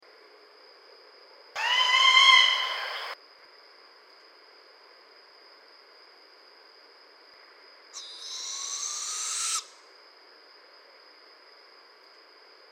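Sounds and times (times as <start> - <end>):
barred owl hissing screeches: 1.6 - 3.2, 8.0 - 9.8.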